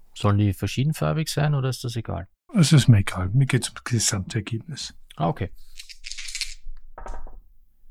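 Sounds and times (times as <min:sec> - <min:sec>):
speech: 0:00.2 - 0:06.0
two six-sided dice rattling in a cup or hand: 0:05.8 - 0:06.7.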